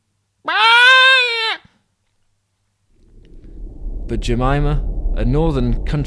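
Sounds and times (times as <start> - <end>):
fox screaming while mating: 0.5 - 1.7
faint low rustle: 2.9 - 6.0
speech: 4.1 - 6.0.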